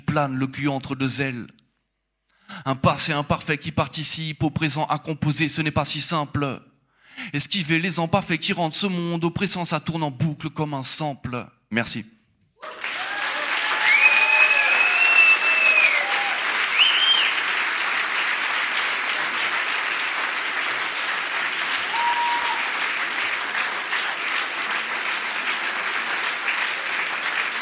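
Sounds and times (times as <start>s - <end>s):
speech: 0.1s - 1.6s, 2.5s - 12.8s
audience whistles and cheers: 12.6s - 17.6s, 21.8s - 22.7s
audience applause: 12.6s - 27.6s.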